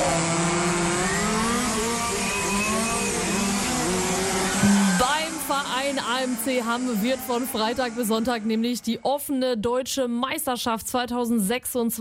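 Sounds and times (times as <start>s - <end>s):
radio-controlled model race cars revving on a race track: 0.0s - 9.0s
speech: 6.2s - 11.9s.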